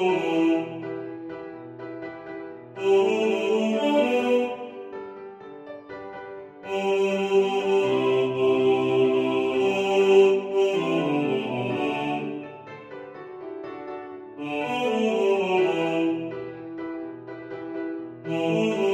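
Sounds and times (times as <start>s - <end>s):
male choir singing: 0.0s - 1.2s, 2.8s - 5.0s, 6.6s - 12.7s, 14.4s - 16.8s, 18.2s - 18.9s
piano: 0.0s - 18.9s.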